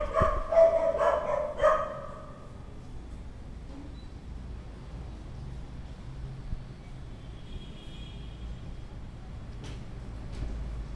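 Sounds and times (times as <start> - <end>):
dog barking: 0.0 - 2.5.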